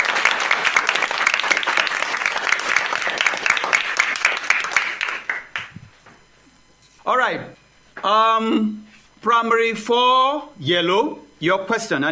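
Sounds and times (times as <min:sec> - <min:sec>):
applause: 0:00.0 - 0:05.8
speech: 0:07.2 - 0:12.1.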